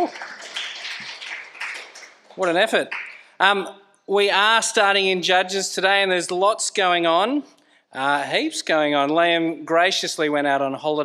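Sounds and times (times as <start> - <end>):
speech: 0.0 - 0.3, 2.4 - 11.0
audience clapping: 0.0 - 3.4.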